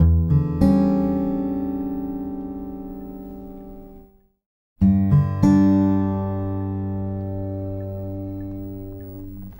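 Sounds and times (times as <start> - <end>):
dark guitar: 0.0 - 9.5.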